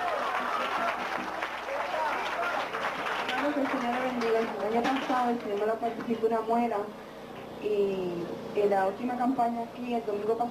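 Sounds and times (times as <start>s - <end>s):
audience applauding: 0.0s - 5.8s
speech: 3.6s - 10.5s.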